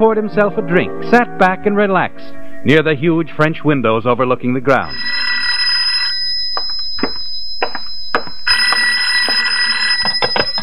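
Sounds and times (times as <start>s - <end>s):
speech: 0.0s - 5.1s
telephone ringing: 4.9s - 10.6s.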